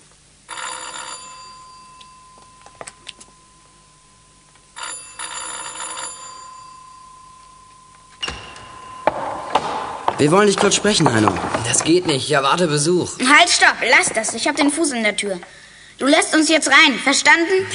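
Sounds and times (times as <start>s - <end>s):
electric doorbell ringing: 0.5s - 10.1s
speech: 10.2s - 17.7s.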